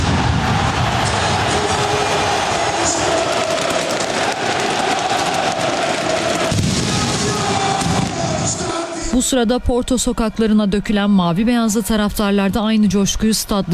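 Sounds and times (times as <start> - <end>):
fireworks exploding at stadium celebration: 0.0 - 9.2
large crowd roaring: 0.0 - 9.5
speech: 9.2 - 13.7.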